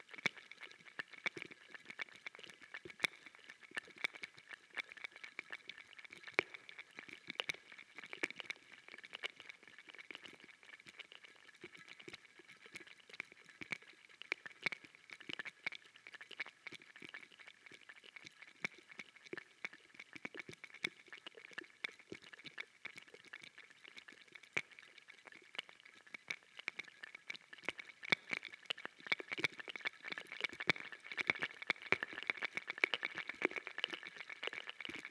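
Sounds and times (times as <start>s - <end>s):
gentle rain droplets: 0.0s - 35.0s.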